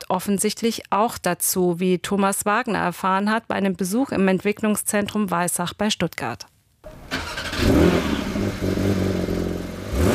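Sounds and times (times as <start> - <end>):
speech: 0.1 - 6.5
Porsche 911 engine starting and revving: 6.9 - 10.1.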